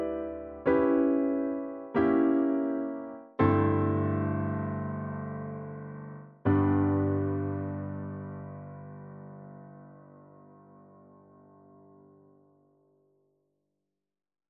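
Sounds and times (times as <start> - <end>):
sweet melody: 0.0 - 10.2.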